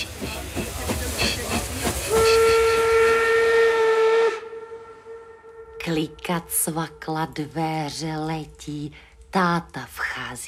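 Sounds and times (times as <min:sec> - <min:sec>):
steam locomotive chugging with rhythmic puffs and hiss: 0:00.0 - 0:04.4
loud steady steam whistle: 0:02.0 - 0:06.5
speech: 0:06.0 - 0:10.4.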